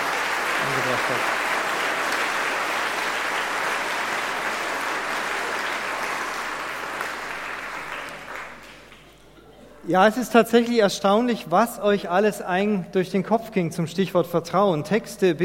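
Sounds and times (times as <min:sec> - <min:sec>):
audience applause: 0:00.0 - 0:09.2
speech: 0:01.1 - 0:01.4, 0:09.9 - 0:15.4.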